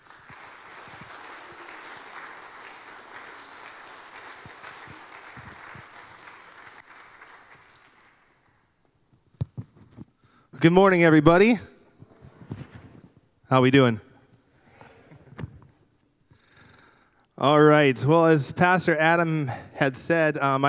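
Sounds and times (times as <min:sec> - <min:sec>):
audience applause: 0:00.0 - 0:08.7
speech: 0:10.6 - 0:11.7, 0:13.5 - 0:14.1, 0:17.4 - 0:20.6.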